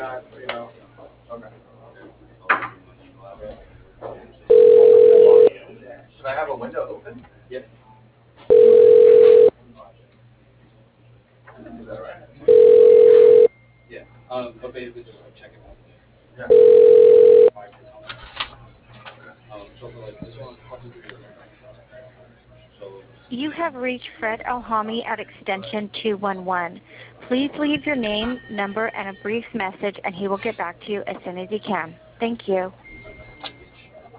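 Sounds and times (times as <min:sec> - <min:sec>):
speech: 0:00.0 - 0:02.2, 0:06.2 - 0:07.8, 0:23.3 - 0:32.8
telephone line ringing during call transfer: 0:04.5 - 0:05.5, 0:08.5 - 0:09.5, 0:12.5 - 0:13.5, 0:16.5 - 0:17.5.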